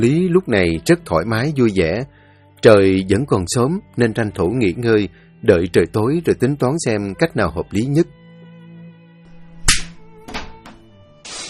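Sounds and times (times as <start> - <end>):
speech: 0.0 - 8.2
large hand slapping a woman's face: 9.6 - 10.8
steady rush of hissing noise: 11.2 - 11.4.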